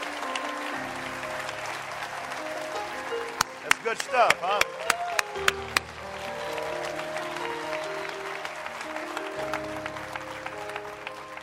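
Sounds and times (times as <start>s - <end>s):
crowd clapping hands: 0.0s - 11.4s
speech: 3.8s - 5.7s.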